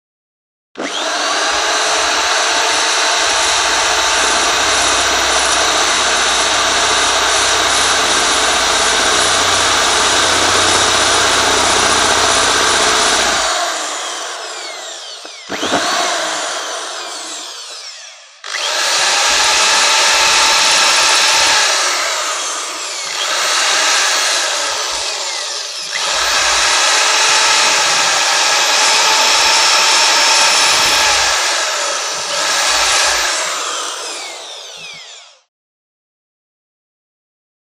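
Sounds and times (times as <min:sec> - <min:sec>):
electric drill: 0:00.8 - 0:35.5.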